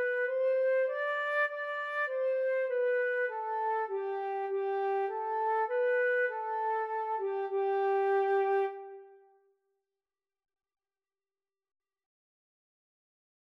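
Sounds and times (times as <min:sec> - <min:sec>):
violin and flute duet: 0:00.0 - 0:09.1.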